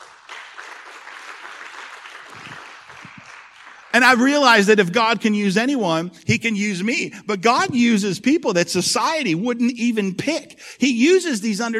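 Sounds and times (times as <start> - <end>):
crowd applauding: 0.0 - 4.6
speech: 4.0 - 11.7.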